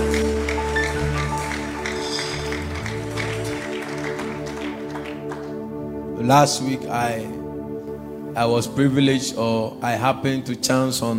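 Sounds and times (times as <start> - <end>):
audience clapping: 0.0 - 5.9
speech: 6.3 - 7.4, 8.4 - 11.1.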